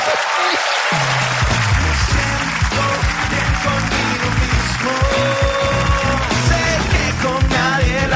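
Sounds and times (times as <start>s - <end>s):
audience applause at a comedy show opening: 0.0s - 8.0s.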